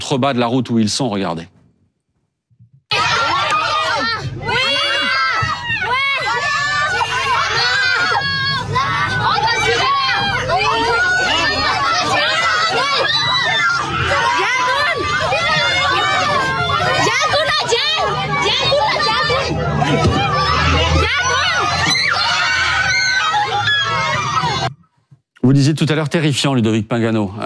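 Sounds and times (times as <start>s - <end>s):
speech: 0.0s - 1.6s, 25.5s - 27.4s
children screaming in panic on a bus: 2.9s - 24.7s
crowd babble: 2.9s - 24.7s.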